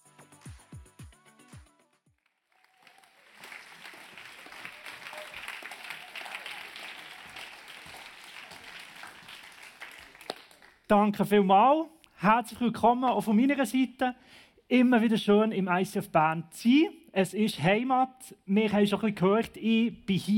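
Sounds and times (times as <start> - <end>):
crowd applauding: 2.2 - 10.9
speech: 10.9 - 20.3.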